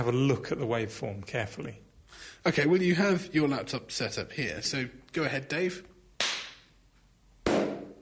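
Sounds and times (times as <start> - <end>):
speech: 0.0 - 5.9
low-pitched hand clap: 6.2 - 6.6
high-pitched hand clap: 6.2 - 6.7.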